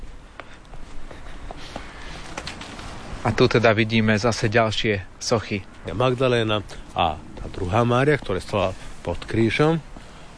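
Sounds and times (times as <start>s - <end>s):
footsteps walking down stone stairs toward a terrace: 0.0s - 3.1s, 6.6s - 9.3s, 9.9s - 10.3s
steady hiss: 0.0s - 10.3s
speech: 3.2s - 9.9s.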